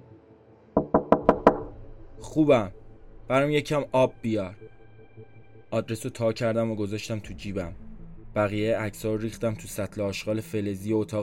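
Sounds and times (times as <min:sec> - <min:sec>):
knocking on a door: 0:00.8 - 0:01.8
speech: 0:02.3 - 0:04.7, 0:05.7 - 0:07.8, 0:08.4 - 0:11.2.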